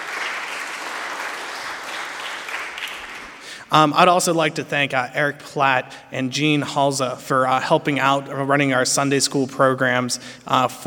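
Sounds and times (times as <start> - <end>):
audience applause at a school gathering: 0.0 - 3.6
speech: 3.7 - 10.8.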